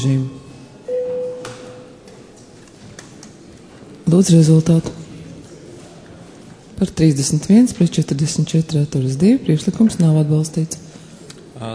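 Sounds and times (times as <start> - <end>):
parliament chamber bell signal: 0.9 - 2.0
speech: 4.1 - 5.0, 6.8 - 10.8, 11.6 - 11.7.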